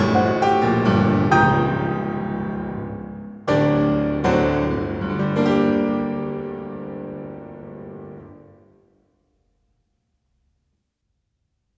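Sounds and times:
piano prelude in G minor: 0.0 - 8.9.

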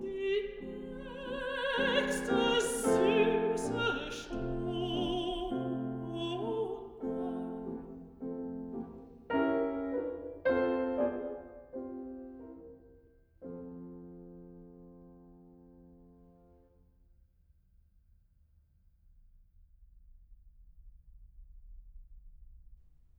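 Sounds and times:
person singing: 0.0 - 8.1
piano: 0.0 - 16.8.

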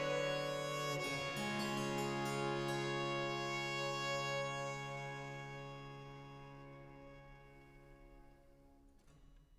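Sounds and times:
trio sonata in G major: 0.0 - 7.1.

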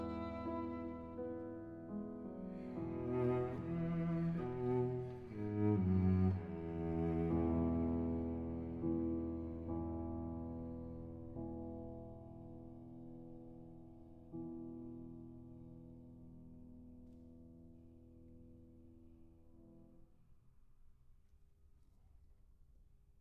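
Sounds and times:
piano trio playing an andante: 0.0 - 11.9.

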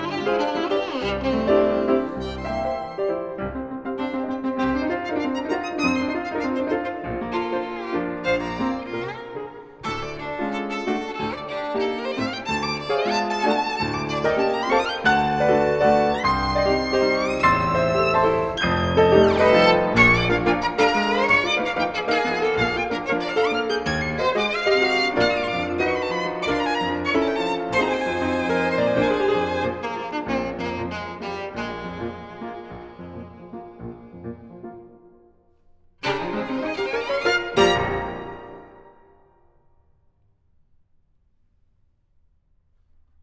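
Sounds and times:
piano prelude: 0.0 - 39.6.

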